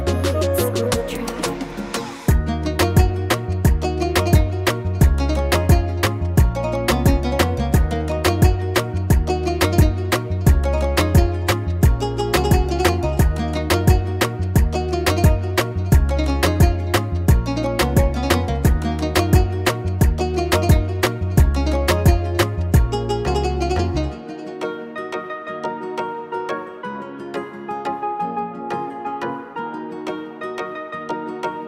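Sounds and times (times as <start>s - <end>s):
oriental reggaeton instrumental beat: 0.0s - 25.0s.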